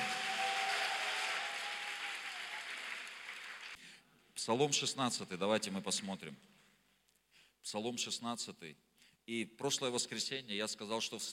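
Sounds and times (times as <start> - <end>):
audience applause: 0.0 - 3.8
speech: 4.4 - 6.6, 7.7 - 11.3.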